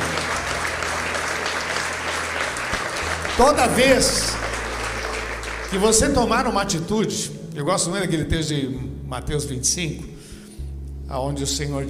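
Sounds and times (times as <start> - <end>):
audience applauding: 0.0 - 6.8
speech: 3.4 - 4.4, 5.7 - 10.2, 11.1 - 11.8.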